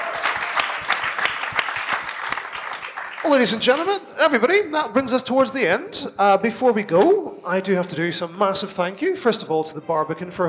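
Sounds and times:
audience applause for a guest at a live event at the Barbican: 0.0 - 3.9
speech: 3.2 - 10.4.

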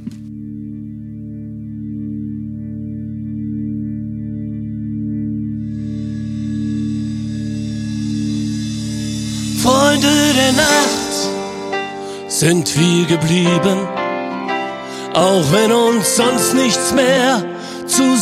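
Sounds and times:
droning synth chord with layered sustained tones: 0.3 - 12.2
bright shimmering textures: 5.7 - 12.5
speech: 12.4 - 14.0, 15.2 - 18.1.

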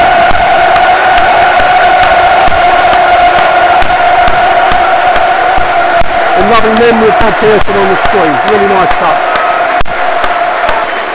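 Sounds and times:
stadium crowd applauding and cheering: 0.0 - 11.1
speech: 6.6 - 9.3.

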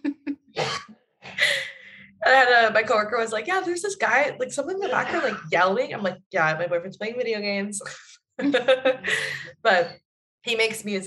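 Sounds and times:
man coughing: 0.6 - 0.9, 4.8 - 5.5
speech: 2.3 - 11.0.

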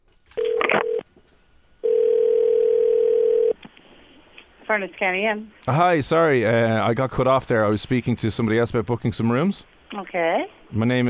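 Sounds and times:
telephone dial tone: 0.4 - 1.0, 1.8 - 3.6
speech: 4.7 - 11.0.

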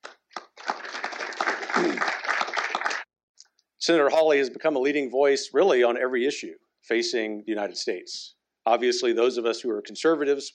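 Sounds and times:
audience applause: 0.0 - 3.1
speech: 3.9 - 10.5.

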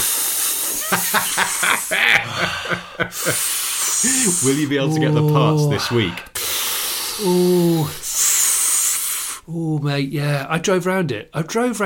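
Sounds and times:
voice imitating hissing vacuum air leak: 0.0 - 2.0, 3.1 - 4.8, 5.7 - 9.6
laughter: 0.7 - 6.1
speech: 0.9 - 6.3, 7.2 - 8.0, 9.5 - 11.8.

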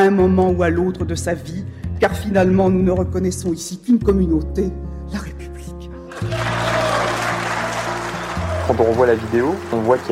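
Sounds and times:
speech: 0.0 - 5.5, 8.7 - 10.0
parliament deputies applauding: 6.1 - 10.0.

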